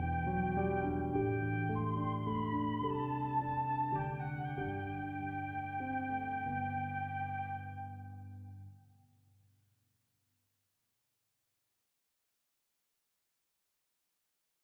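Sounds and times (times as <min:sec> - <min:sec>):
instrumental music: 0:00.0 - 0:08.7.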